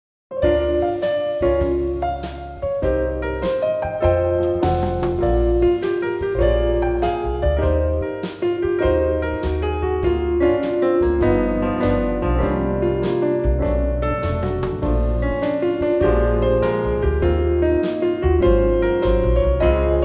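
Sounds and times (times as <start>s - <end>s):
relaxing jazz trio playing: 0.4s - 20.0s.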